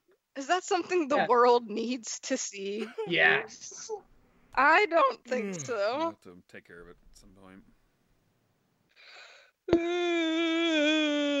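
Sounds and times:
speech: 0.4s - 4.0s, 4.6s - 7.7s, 9.7s - 11.2s
person yawning: 9.7s - 11.3s.

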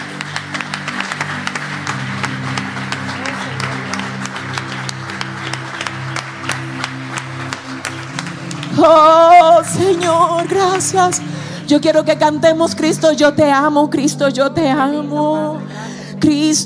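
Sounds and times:
audience applause: 0.0s - 11.7s
speech: 8.8s - 16.6s.

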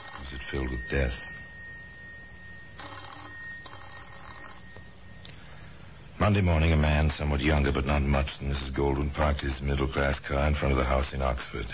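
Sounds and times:
bell ringing in an empty house: 0.0s - 5.7s
speech: 0.5s - 1.4s, 6.3s - 11.7s.

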